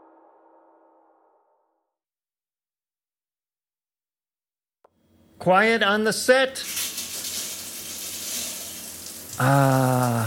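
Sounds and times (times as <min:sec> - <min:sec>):
speech: 0:05.4 - 0:06.9, 0:09.4 - 0:10.2
running shower water: 0:06.6 - 0:10.2.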